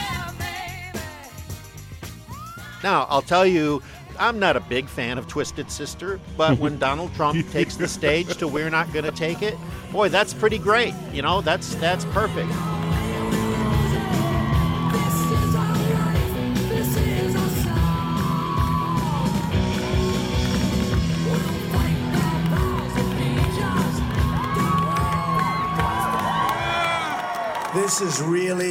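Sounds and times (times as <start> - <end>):
whoops and high yells: 2.3 - 2.8, 12.6 - 16.2, 18.0 - 19.8, 24.0 - 27.8
large rally crowd cheering: 2.3 - 28.6
speech: 2.8 - 12.8, 28.0 - 28.6
laughter: 6.0 - 9.6.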